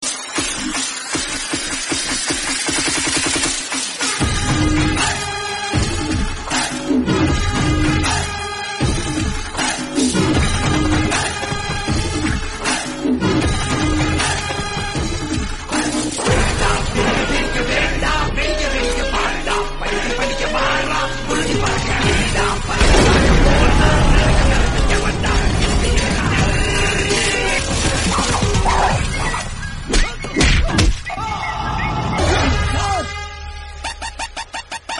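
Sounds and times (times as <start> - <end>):
mass background music: 0.0 - 34.9.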